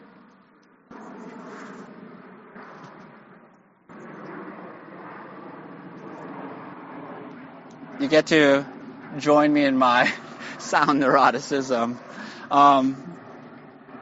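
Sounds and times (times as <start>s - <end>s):
airplane passing overhead: 0.0s - 13.9s
speech: 8.0s - 13.0s.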